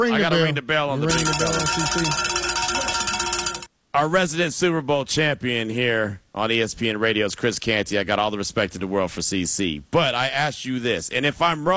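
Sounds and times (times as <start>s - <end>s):
speech: 0.0s - 2.4s, 3.9s - 11.7s
bell being rung: 1.1s - 3.7s.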